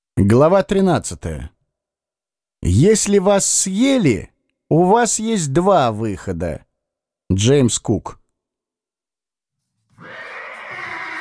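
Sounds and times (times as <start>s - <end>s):
speech: 0.2s - 1.6s, 2.6s - 6.7s, 7.3s - 8.2s
horse snorting and whinnying while rearing: 10.0s - 11.2s.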